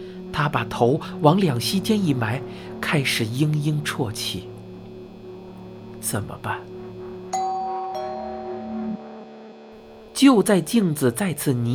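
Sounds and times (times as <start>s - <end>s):
speech: 0.4s - 4.5s, 6.0s - 6.7s, 10.2s - 11.7s
doorbell ringing: 7.3s - 9.4s.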